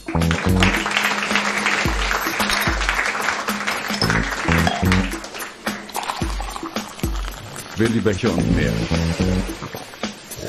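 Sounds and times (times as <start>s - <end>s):
audience applause: 0.0s - 7.8s
speech: 7.8s - 9.9s.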